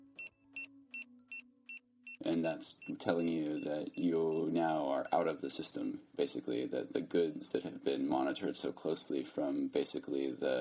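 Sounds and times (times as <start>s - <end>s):
checkout scanner beeps: 0.0s - 5.4s
speech: 2.2s - 10.6s.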